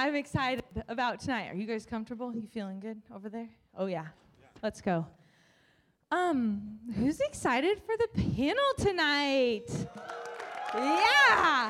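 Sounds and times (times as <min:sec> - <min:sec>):
speech: 0:00.0 - 0:05.2, 0:06.1 - 0:11.6
woo cheers: 0:09.6 - 0:11.6
audience clapping: 0:09.7 - 0:11.6.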